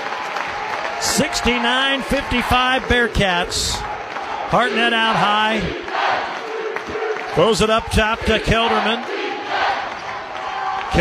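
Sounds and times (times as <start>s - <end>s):
basketball arena crowd cheering: 0.0s - 11.0s
speech: 1.1s - 3.9s, 4.5s - 6.3s, 7.4s - 9.2s.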